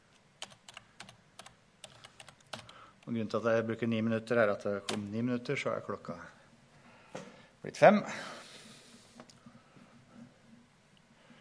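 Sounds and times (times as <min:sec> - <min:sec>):
typing on a computer keyboard: 0:00.4 - 0:02.8
speech: 0:03.1 - 0:06.4, 0:07.6 - 0:08.4.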